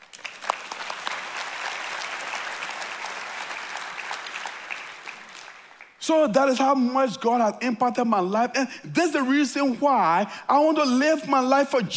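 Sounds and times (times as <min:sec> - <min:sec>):
audience applause: 0:00.0 - 0:06.0
speech: 0:06.1 - 0:11.9.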